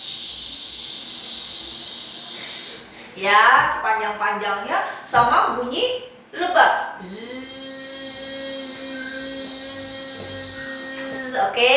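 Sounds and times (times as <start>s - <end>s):
person imitating a snake's hiss: 0.0s - 3.0s, 7.0s - 11.5s
speech: 3.2s - 7.4s, 11.4s - 11.7s.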